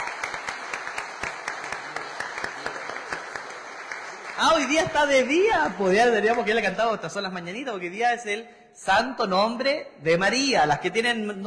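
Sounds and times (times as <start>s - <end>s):
audience applause: 0.0s - 6.6s
speech: 4.4s - 11.4s.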